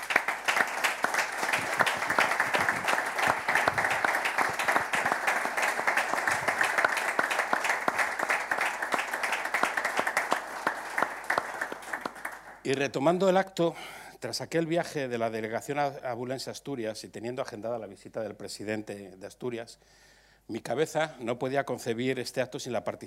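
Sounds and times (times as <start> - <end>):
audience applause: 0.0 - 12.6
speech: 12.7 - 23.0.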